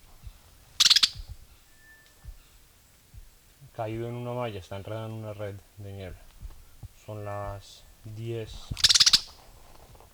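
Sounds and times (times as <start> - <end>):
blackbird alarm call: 0.0 - 4.4, 6.1 - 9.5
faint thin steady whine: 0.0 - 10.1
speech: 3.8 - 6.3, 7.1 - 8.9.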